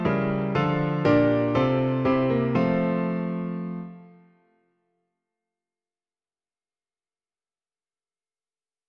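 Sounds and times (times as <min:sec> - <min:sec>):
piano piece: 0:00.0 - 0:04.7.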